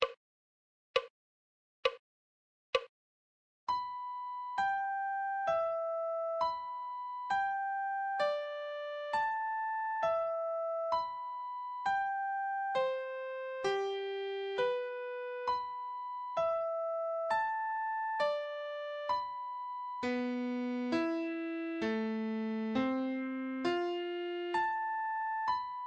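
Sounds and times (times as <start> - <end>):
slow adagio melody in treble clef: 3.7 - 25.8.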